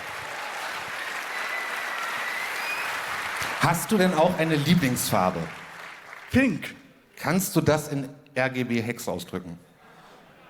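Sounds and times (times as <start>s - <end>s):
audience applause: 0.0s - 6.4s
speech: 3.6s - 5.6s, 6.3s - 9.7s.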